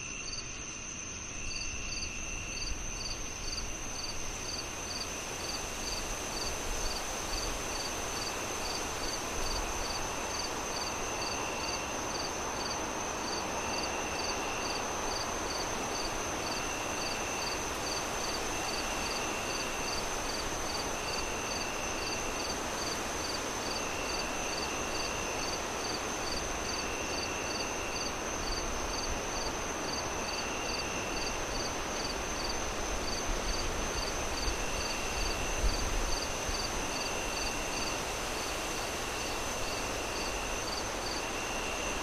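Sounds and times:
cricket chirping: 0.0s - 42.0s.

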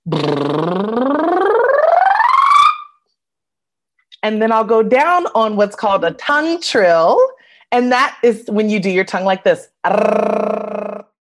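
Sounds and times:
vocal siren on a rising lip buzz: 0.0s - 3.0s
speech: 4.2s - 10.6s.

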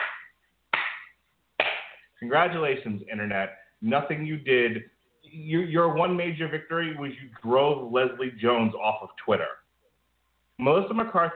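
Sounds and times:
slow clap: 0.0s - 2.1s
speech: 2.2s - 9.6s, 10.6s - 11.3s.

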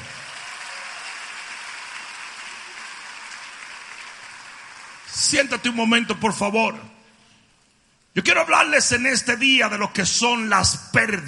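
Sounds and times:
audience applause: 0.0s - 5.1s
speech: 5.2s - 7.0s, 8.2s - 11.2s.

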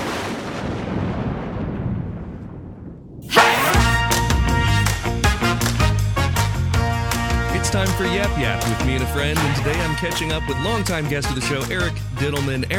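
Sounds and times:
loud roll of thunder rumbling: 0.0s - 6.2s
upbeat music with a steady beat: 3.3s - 12.7s
speech: 7.7s - 12.7s.

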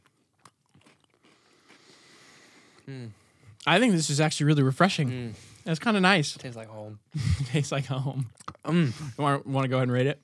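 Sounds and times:
biting and chewing a round shortbread butter cookie: 0.0s - 2.0s
speech: 2.9s - 10.2s.

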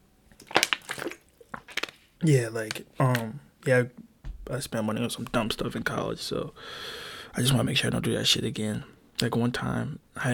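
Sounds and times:
person drinking water: 0.4s - 2.0s
speech: 2.2s - 10.3s.

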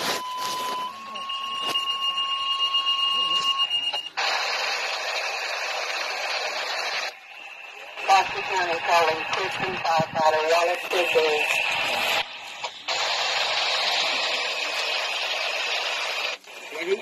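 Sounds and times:
radio dispatch alert tone: 0.0s - 5.2s, 5.9s - 17.0s
radio static hissing: 4.2s - 17.0s
speech: 8.2s - 11.7s.

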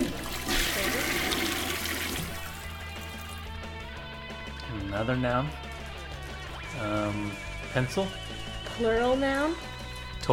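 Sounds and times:
toilet flushing: 0.0s - 3.4s
speech: 4.9s - 5.6s, 6.8s - 10.3s.

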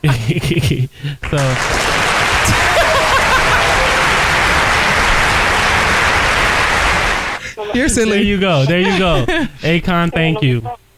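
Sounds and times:
laughter: 0.1s - 7.7s, 8.6s - 9.7s
clapping: 1.2s - 7.4s
speech: 1.3s - 2.7s, 7.7s - 10.8s.

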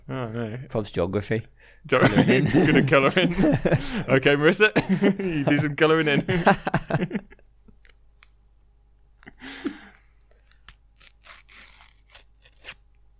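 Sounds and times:
speech: 0.1s - 7.2s
laughter: 2.0s - 4.2s, 4.8s - 7.4s
paper tearing near stickers: 10.6s - 12.8s.

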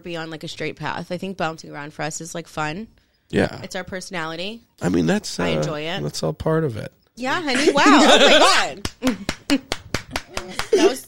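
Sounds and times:
speech: 0.0s - 9.8s, 10.5s - 11.0s
laughter: 7.4s - 11.0s
clapping sound effect drop: 8.8s - 10.8s.

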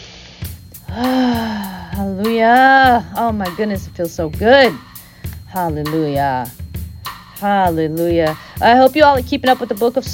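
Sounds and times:
deep breath and sigh during a spiritual uplift session: 0.8s - 2.0s
speech: 2.0s - 4.9s, 5.5s - 6.6s, 7.4s - 10.1s.

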